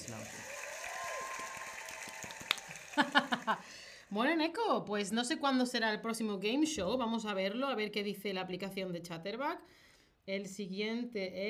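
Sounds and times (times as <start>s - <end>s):
group applause: 0.0s - 4.1s
laughter: 2.7s - 3.7s
speech: 3.0s - 11.4s.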